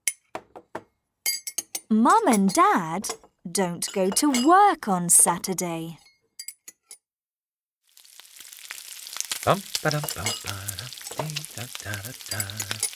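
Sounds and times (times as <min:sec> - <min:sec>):
speech: 0:01.9 - 0:06.0, 0:09.5 - 0:12.9
breakfast frying in a pan: 0:07.8 - 0:12.9.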